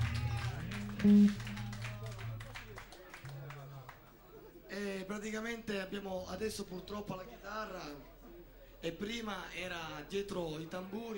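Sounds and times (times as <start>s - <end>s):
audience applause: 0.0s - 4.0s
speech: 1.0s - 1.4s, 5.1s - 8.2s, 8.8s - 11.1s.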